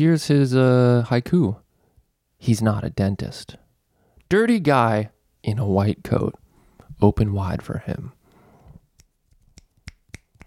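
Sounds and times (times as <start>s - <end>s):
speech: 0.0s - 1.6s, 2.4s - 3.6s, 4.3s - 6.4s, 7.0s - 8.2s
finger snapping as jazz applause: 9.0s - 10.4s.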